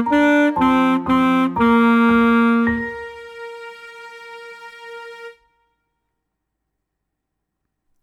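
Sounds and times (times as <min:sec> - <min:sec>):
saxophone: 0:00.0 - 0:05.8.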